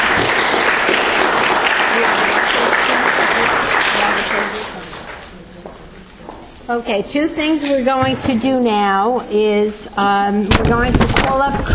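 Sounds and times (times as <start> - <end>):
loud audience applause: 0.0 - 5.4
speech: 6.7 - 11.7.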